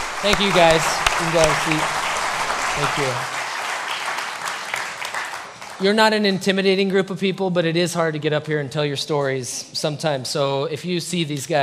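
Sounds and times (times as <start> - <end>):
audience applause: 0.0 - 6.0
speech: 0.2 - 2.0, 2.8 - 3.4, 5.8 - 11.6.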